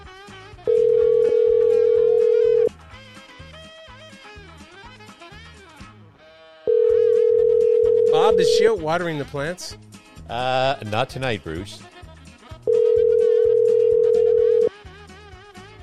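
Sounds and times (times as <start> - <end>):
music: 0.0 - 15.8
telephone dial tone: 0.7 - 2.7, 6.7 - 8.5, 12.7 - 14.7
speech: 8.5 - 11.9.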